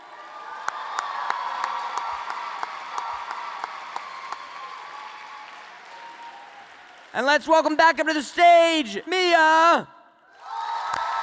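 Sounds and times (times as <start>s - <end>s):
audience applause for a poet at a poetry slam: 0.0s - 8.8s
speech: 7.1s - 10.0s.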